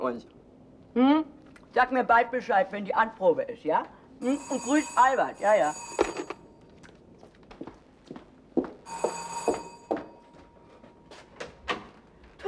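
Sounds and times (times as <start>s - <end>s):
speech: 0.0s - 0.4s, 1.0s - 6.1s
doorbell ringing: 4.2s - 6.6s, 8.9s - 10.8s.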